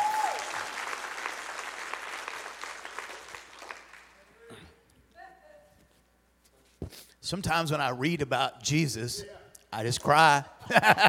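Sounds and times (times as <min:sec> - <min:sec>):
audience applause: 0:00.0 - 0:04.2
speech: 0:06.9 - 0:11.0
laughter: 0:10.6 - 0:11.0.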